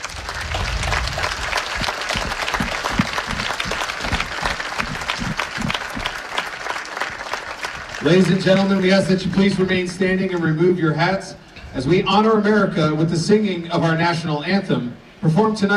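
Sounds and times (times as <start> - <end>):
audience applause: 0.0 - 9.8
speech: 8.0 - 15.7.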